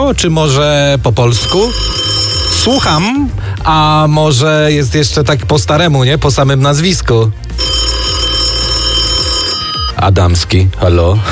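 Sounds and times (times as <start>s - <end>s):
speech: 0.1s - 7.8s, 10.0s - 11.3s
telephone ringing: 1.4s - 3.2s, 7.5s - 10.1s.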